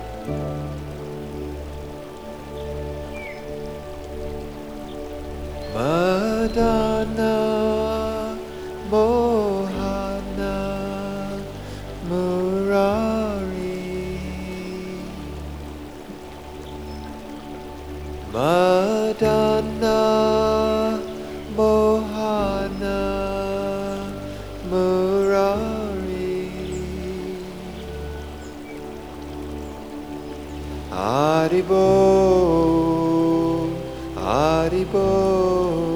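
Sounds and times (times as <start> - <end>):
stream flowing: 0.0 - 35.9.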